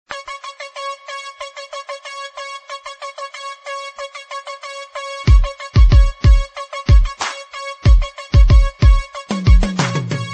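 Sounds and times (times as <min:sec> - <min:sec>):
hip hop music: 0:00.1 - 0:10.3.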